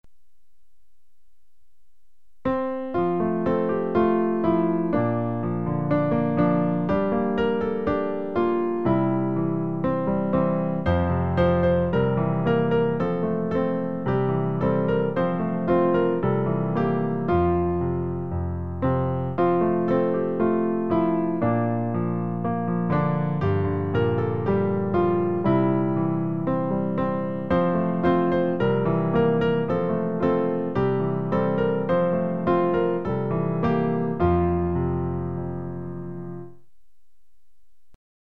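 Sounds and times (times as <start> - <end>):
piano: 0.0 - 38.0.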